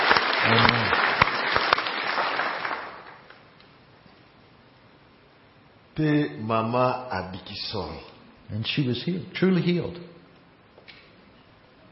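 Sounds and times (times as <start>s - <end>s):
audience applause: 0.0s - 3.4s
speech: 6.0s - 10.1s.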